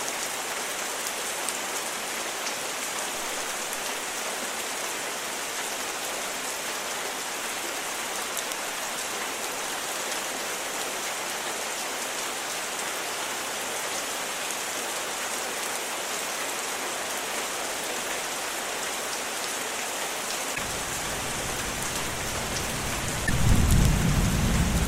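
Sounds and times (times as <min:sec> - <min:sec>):
rain storm: 0:00.0 - 0:24.8
thunder: 0:22.2 - 0:24.8.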